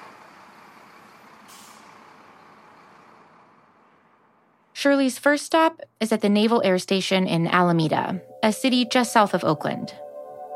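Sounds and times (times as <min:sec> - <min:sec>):
loaded truck driving out through a gate: 0:00.0 - 0:04.7
speech: 0:04.8 - 0:10.1.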